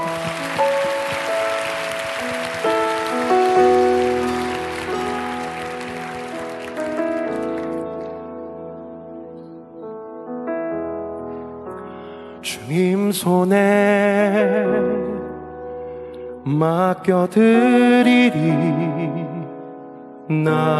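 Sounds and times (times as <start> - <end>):
audience applause: 0.0 - 8.0
speech: 13.2 - 14.9, 16.5 - 19.2, 20.3 - 20.7.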